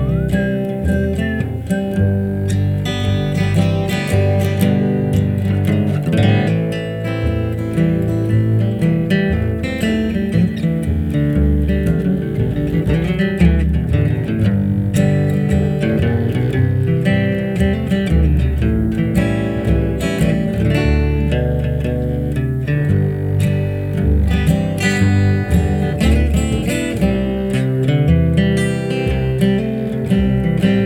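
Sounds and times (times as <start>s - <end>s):
double bass: 0.0s - 30.8s.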